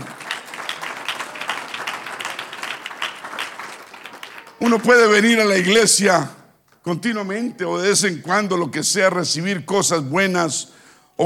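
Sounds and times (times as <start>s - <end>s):
applause: 0.0s - 5.8s
speech: 4.6s - 11.2s.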